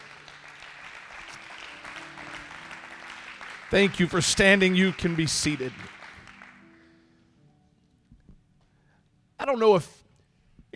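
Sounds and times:
audience clapping hands: 0:00.0 - 0:06.9
speech: 0:03.7 - 0:06.0, 0:09.6 - 0:10.0.

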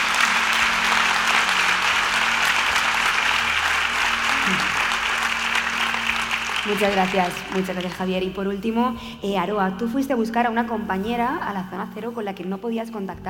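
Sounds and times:
audience applause: 0:00.0 - 0:08.2
speech: 0:06.7 - 0:13.2.

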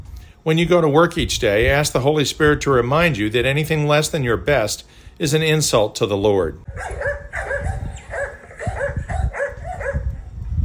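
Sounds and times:
speech: 0:00.4 - 0:07.6
Great Dane barking: 0:06.7 - 0:10.6.

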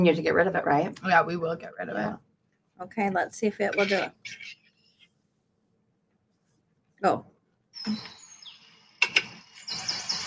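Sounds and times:
speech: 0:00.0 - 0:04.6, 0:07.0 - 0:08.2
capercaillie call: 0:03.7 - 0:04.6.

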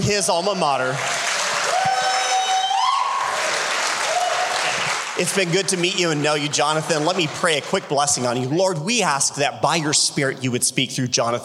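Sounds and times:
speech: 0:00.0 - 0:01.2, 0:05.2 - 0:11.4
audience applause: 0:00.0 - 0:08.5.

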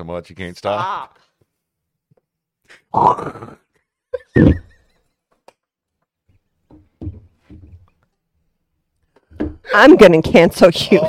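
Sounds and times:
speech: 0:00.0 - 0:01.3, 0:02.7 - 0:03.6, 0:04.4 - 0:04.7, 0:09.7 - 0:11.0
person gagging: 0:02.8 - 0:04.7.

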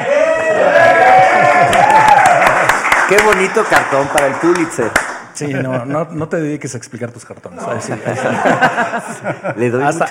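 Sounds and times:
audience cheering and clapping: 0:00.0 - 0:05.3
speech: 0:03.1 - 0:10.0
laughter: 0:07.5 - 0:10.0.

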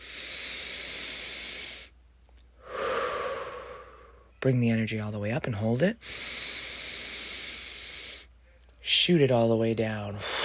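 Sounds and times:
deep breathing: 0:00.0 - 0:02.0, 0:02.6 - 0:04.3, 0:06.0 - 0:08.3, 0:10.1 - 0:10.4
speech: 0:04.4 - 0:06.4, 0:09.0 - 0:10.4.

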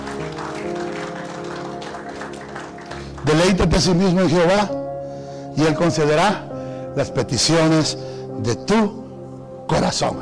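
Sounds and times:
audience clapping: 0:00.0 - 0:04.0
speech: 0:03.3 - 0:04.8, 0:05.6 - 0:09.0, 0:09.7 - 0:10.2.

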